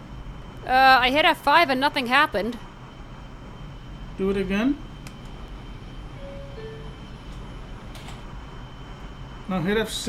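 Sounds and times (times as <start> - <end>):
Brooklyn-bound subway train rumbling: 0.0 - 10.0
speech: 0.6 - 2.7, 4.2 - 4.9, 9.5 - 10.0
thin high whine: 6.0 - 7.9
faint brief tonal beeps: 6.1 - 7.7.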